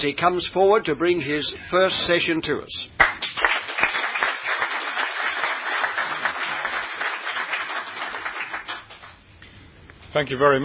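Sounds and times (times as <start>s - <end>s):
speech: 0.0s - 3.1s, 10.1s - 10.6s
audience applauding to welcome a speaker: 3.0s - 9.2s.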